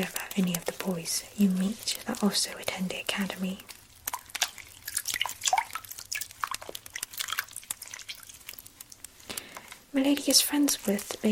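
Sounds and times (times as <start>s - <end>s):
speech: 0.0s - 3.8s, 10.0s - 11.2s
water drips: 0.0s - 11.2s
bath water splashing and trickling: 1.6s - 9.5s.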